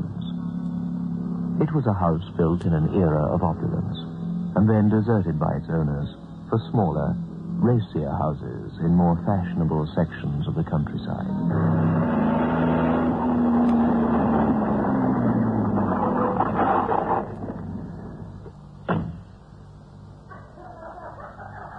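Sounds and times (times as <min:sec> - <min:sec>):
car engine rumbling while driving up to a house: 0:00.0 - 0:20.4
speech: 0:01.6 - 0:12.8
sharp thump: 0:18.8 - 0:19.3
laughter: 0:20.4 - 0:21.7.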